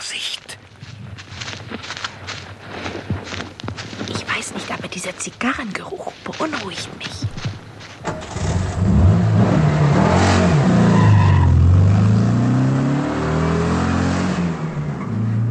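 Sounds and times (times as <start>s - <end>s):
speech: 5.0s - 7.3s
car engine starting and revving as it drives off: 8.1s - 15.4s.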